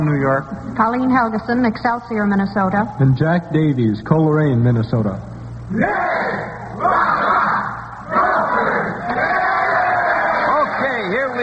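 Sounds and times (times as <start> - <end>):
speech: 0.2 - 7.1
campus crowd cheering and yelling for a varsity college quiz team: 5.8 - 11.4.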